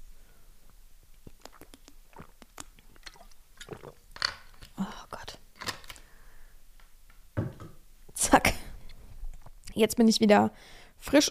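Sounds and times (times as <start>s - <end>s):
person sipping water: 1.2s - 5.2s
speech: 9.8s - 11.2s.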